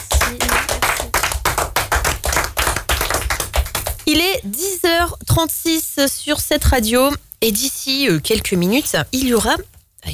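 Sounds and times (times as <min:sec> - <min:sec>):
radio studio audience clapping for performers: 0:00.0 - 0:04.3
speech: 0:04.1 - 0:10.1.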